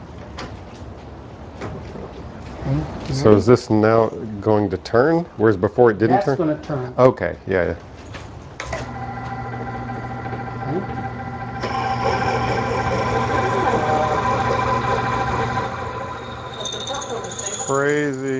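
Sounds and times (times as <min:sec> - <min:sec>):
speech: 0:02.7 - 0:07.9
drill boring a hole through the center: 0:08.9 - 0:18.3.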